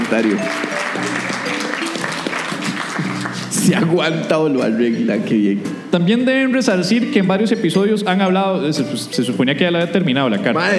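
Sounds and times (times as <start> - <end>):
crowd applauding: 0.0 - 3.9
speech: 0.1 - 1.3, 3.7 - 10.7.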